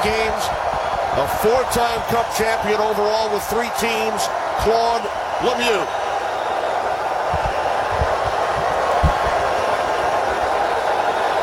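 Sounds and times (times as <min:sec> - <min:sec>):
hockey fans chanting in arena: 0:00.0 - 0:11.4
speech: 0:01.2 - 0:06.0
low thumps: 0:07.3 - 0:09.5.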